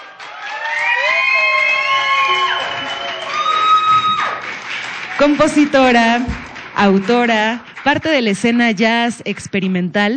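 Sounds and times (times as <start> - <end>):
crowd cheering: 0.0 - 8.2
whoops and sliding whistles: 0.8 - 4.4
speech: 5.2 - 10.1.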